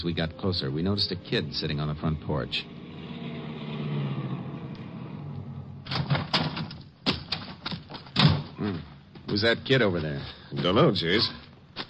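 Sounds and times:
speech: 0:00.0 - 0:02.8, 0:08.6 - 0:11.4
car engine rumbling as the vehicle pulls up: 0:00.6 - 0:07.0
sharp clunks and thuds: 0:05.8 - 0:09.4.

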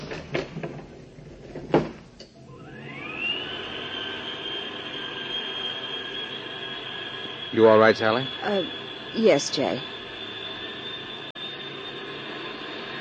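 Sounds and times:
elevator heavy clunks and rattles: 0:00.0 - 0:02.2
elevator motor whine going up: 0:00.0 - 0:13.0
speech: 0:07.6 - 0:10.0.

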